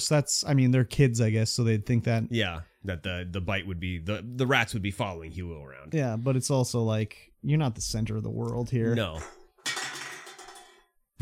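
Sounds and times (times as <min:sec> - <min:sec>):
speech: 0:00.0 - 0:09.4
drink cans knocked over by pet's tail clattering: 0:09.0 - 0:10.9.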